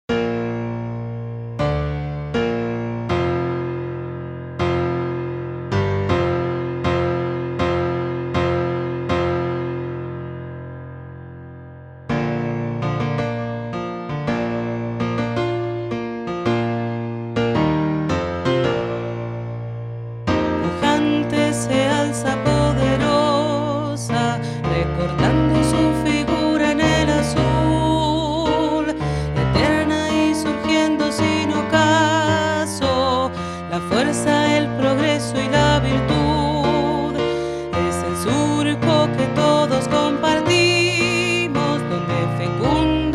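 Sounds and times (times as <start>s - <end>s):
hymn with piano: 0.1s - 43.1s.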